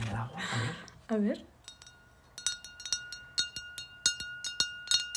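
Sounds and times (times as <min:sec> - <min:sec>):
speech: 0:00.2 - 0:01.5
tapping on glass: 0:01.6 - 0:05.1.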